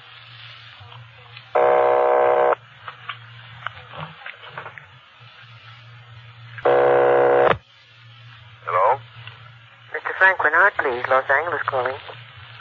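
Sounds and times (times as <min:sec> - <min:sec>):
telephone ringing on the line: 0:01.6 - 0:02.6, 0:06.7 - 0:07.6
speech: 0:10.6 - 0:12.2.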